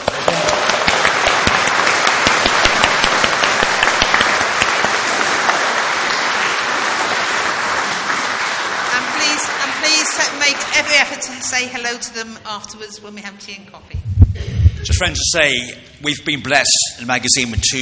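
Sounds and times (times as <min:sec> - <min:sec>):
audience clapping: 0:00.0 - 0:12.0
speech: 0:11.4 - 0:17.7.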